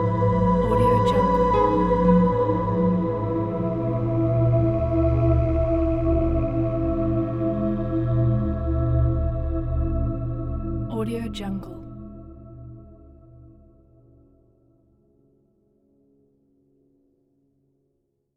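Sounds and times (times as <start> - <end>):
creepy ambient music: 0.0 - 13.8.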